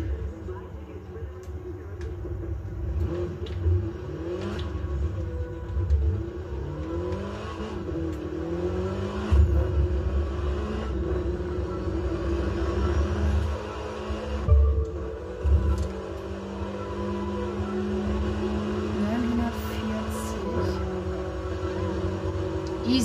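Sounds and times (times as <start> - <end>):
gangster car engine revving in a driving video game: 2.2 - 23.0.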